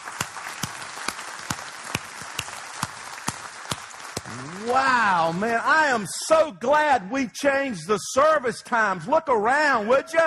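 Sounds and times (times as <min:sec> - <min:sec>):
audience hand clapping: 0:00.0 - 0:06.1
speech: 0:04.3 - 0:10.2.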